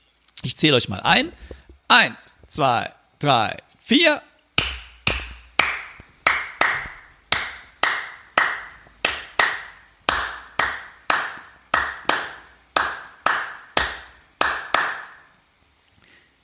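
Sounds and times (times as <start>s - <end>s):
speech: 0.4s - 4.3s
hand claps playing 3-2 son clave rhythm: 4.6s - 15.3s.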